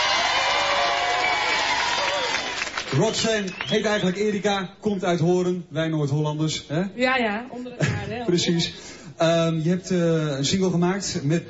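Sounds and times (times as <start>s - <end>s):
audience applause for a singer: 0.0s - 4.2s
speech: 2.9s - 11.4s.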